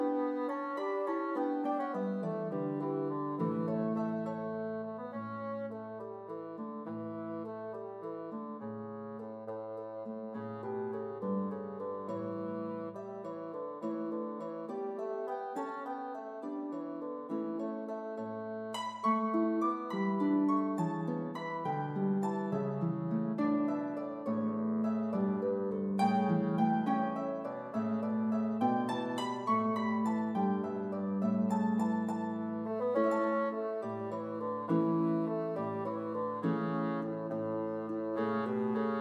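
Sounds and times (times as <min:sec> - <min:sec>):
bassoon: 0:00.0 - 0:38.9
harp: 0:00.0 - 0:38.9.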